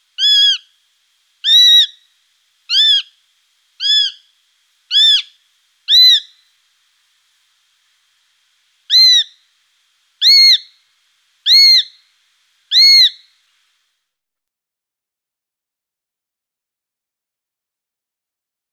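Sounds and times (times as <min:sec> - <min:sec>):
Eurasian sparrowhawk sharp calls: 0:00.2 - 0:00.7, 0:01.4 - 0:02.1, 0:02.7 - 0:03.2, 0:03.8 - 0:04.3, 0:04.9 - 0:06.4, 0:08.9 - 0:09.4, 0:10.2 - 0:10.8, 0:11.5 - 0:12.0, 0:12.7 - 0:13.3.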